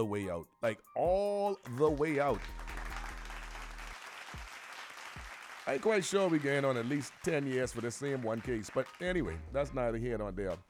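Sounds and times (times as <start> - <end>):
speech: 0.0 - 2.6, 5.6 - 10.6
applause sound effect played from a soundboard: 1.6 - 9.6.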